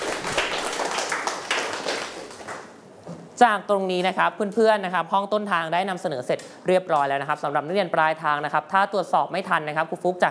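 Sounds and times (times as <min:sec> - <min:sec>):
classroom applause: 0:00.0 - 0:02.8
speech: 0:03.4 - 0:10.3.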